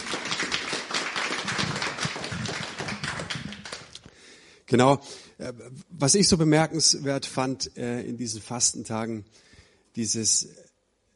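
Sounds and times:
audience applause: 0.0 - 4.0
speech: 4.7 - 10.7.

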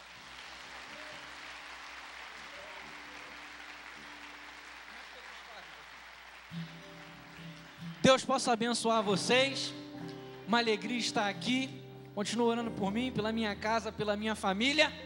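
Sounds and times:
audience applauding: 0.0 - 9.1
speech: 8.0 - 9.8, 10.5 - 15.0.

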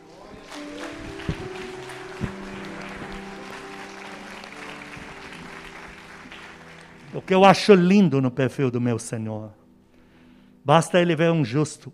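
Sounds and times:
audience applause: 0.0 - 7.8
speech: 7.1 - 9.6, 10.6 - 11.9.

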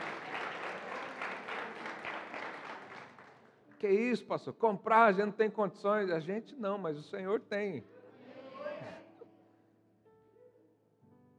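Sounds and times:
audience applause: 0.0 - 3.5
speech: 3.8 - 8.0.

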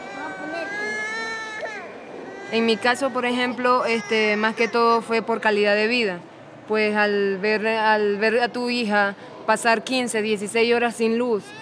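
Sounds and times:
baby crying: 0.0 - 5.2
speech: 2.5 - 11.6.

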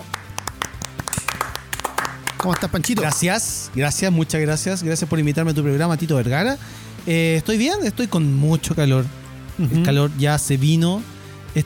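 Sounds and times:
applause for a radio guest: 0.0 - 3.4
low musical backing: 0.0 - 11.6
speech: 2.4 - 11.6.

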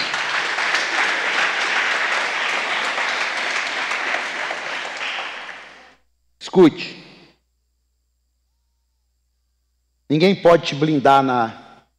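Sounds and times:
audience applause: 0.0 - 6.0
speech: 6.6 - 7.0, 10.1 - 11.6.

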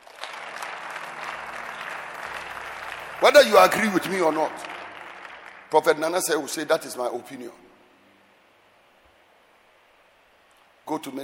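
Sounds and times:
audience clapping hands: 0.0 - 7.1
speech: 3.2 - 4.7, 5.7 - 7.6, 10.9 - 11.2.

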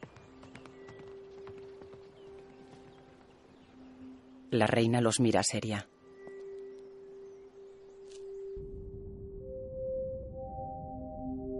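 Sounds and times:
white horse hooves riding away: 0.0 - 4.3
speech: 4.5 - 5.9.

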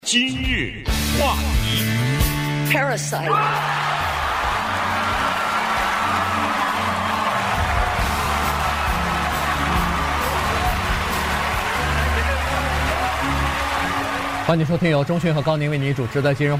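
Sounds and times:
speech: 0.1 - 2.1, 2.7 - 4.0, 14.5 - 16.5
audience cheering at awards ceremony: 3.3 - 16.5.

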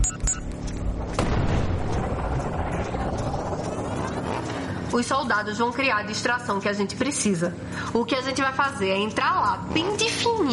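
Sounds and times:
missiles launching and exploding in combat: 0.8 - 4.5
speech: 5.0 - 10.5.

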